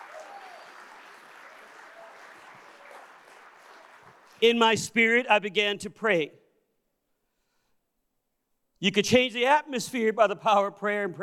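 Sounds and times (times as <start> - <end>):
audience clapping hands in praise: 0.0 - 4.6
speech: 4.4 - 6.4, 8.8 - 11.2.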